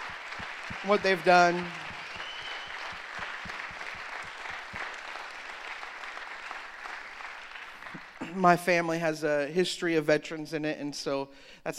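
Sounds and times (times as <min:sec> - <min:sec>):
audience applause: 0:00.0 - 0:08.5
speech: 0:00.8 - 0:01.8, 0:08.4 - 0:11.7.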